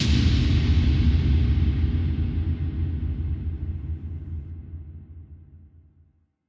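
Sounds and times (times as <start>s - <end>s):
drop kick: 0.0s - 4.4s.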